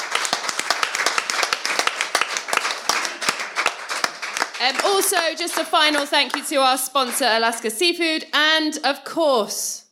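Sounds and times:
audience applause: 0.0 - 7.2
speech: 4.6 - 9.8.

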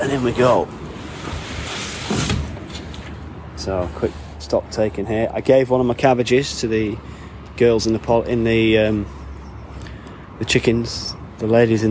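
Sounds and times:
speech: 0.0 - 0.8, 3.6 - 9.2, 10.4 - 11.8
sliding door of a polytunnel rolling open: 0.0 - 3.2.

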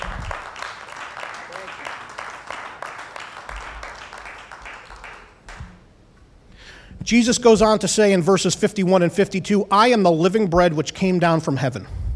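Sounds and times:
audience clapping hands in praise: 0.0 - 5.8
speech: 7.0 - 12.0.

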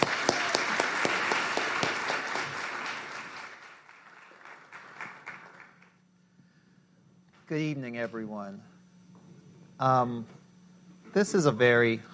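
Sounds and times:
church congregation applauding to welcome a preacher at an evening service: 0.0 - 6.0
speech: 7.5 - 8.7, 9.8 - 10.4, 11.1 - 12.1.

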